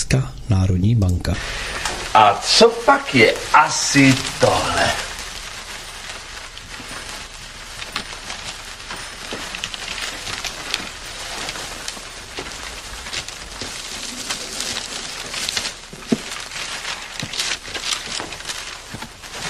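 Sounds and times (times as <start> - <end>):
speech: 0.1 - 5.1
paper crinkling and tearing as a gift box is unwrapped: 1.4 - 19.4.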